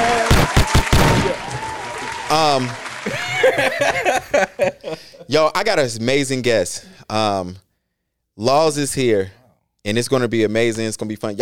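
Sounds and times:
hand claps: 0:00.0 - 0:04.5
laughter: 0:01.4 - 0:05.6
speech: 0:02.3 - 0:07.6, 0:08.4 - 0:11.4.

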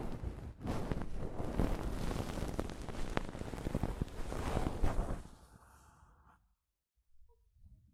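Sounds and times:
mic brushing using soft fabric: 0:00.2 - 0:05.3.

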